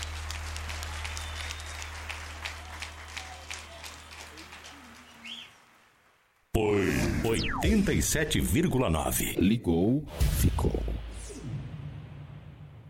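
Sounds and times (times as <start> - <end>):
crowd applauding: 0.0 - 6.5
speech: 7.3 - 10.9.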